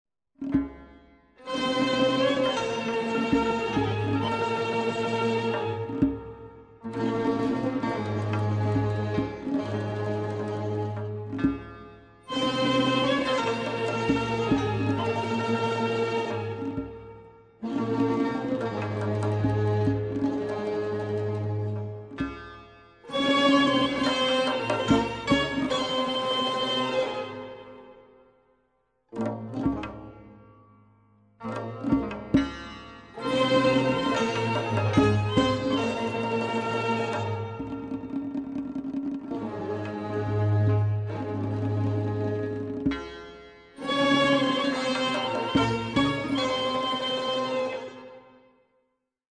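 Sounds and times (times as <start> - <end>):
segah maqam music: 0.4 - 28.1, 29.2 - 48.5.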